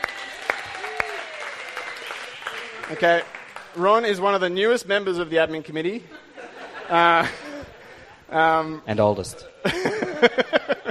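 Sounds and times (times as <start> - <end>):
audience applause at a committee meeting: 0.0 - 4.4
speech: 2.9 - 6.2, 6.9 - 7.4, 8.3 - 10.5
laughter: 5.9 - 8.6, 9.2 - 10.8.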